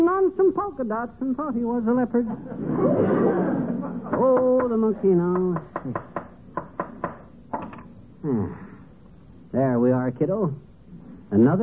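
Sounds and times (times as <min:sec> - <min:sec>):
speech: 0:00.7 - 0:06.2, 0:08.2 - 0:08.6, 0:09.5 - 0:10.7, 0:11.3 - 0:11.6
laughter: 0:02.2 - 0:04.6
hammer tapping a nail: 0:04.2 - 0:07.3.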